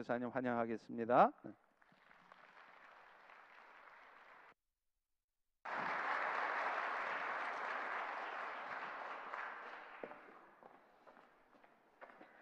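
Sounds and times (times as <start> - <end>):
speech: 0.0 - 1.7
audience applause: 1.8 - 4.6, 5.6 - 10.7.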